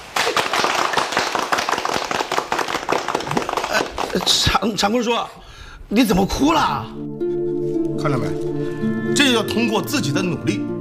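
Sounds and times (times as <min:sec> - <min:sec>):
group applause: 0:00.0 - 0:04.7
speech: 0:04.1 - 0:07.0, 0:08.0 - 0:08.5, 0:09.2 - 0:10.7.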